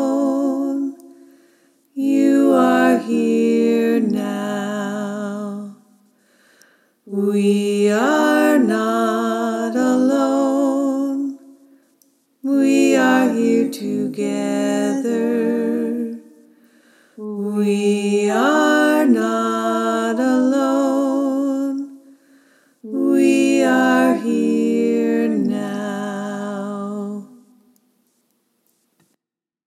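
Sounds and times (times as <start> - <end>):
choir singing all parts: 0.0 - 1.1, 2.0 - 6.0, 7.1 - 11.5, 12.4 - 16.6, 17.2 - 22.0, 22.8 - 27.6.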